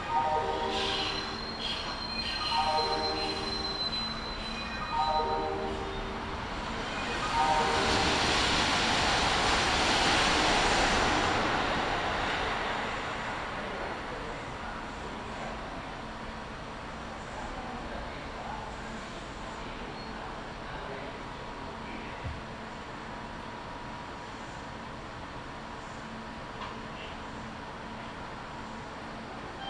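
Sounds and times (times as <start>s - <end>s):
Kintetsu Nagoya Line local train rolling rumble: 0.0s - 29.6s
stepped chime tones on Kintetsu Nagoya Line local train: 1.3s - 5.8s.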